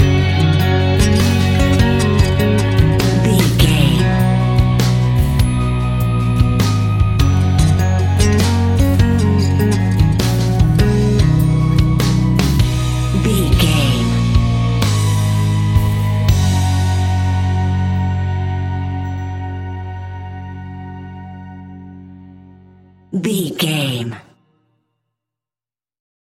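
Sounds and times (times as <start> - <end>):
soft morning pop rock music: 0.0 - 20.4.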